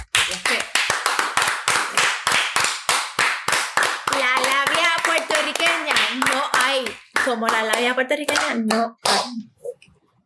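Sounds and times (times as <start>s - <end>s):
live applause with steady sharp hand clapping: 0.0s - 9.4s
speech: 7.3s - 9.6s.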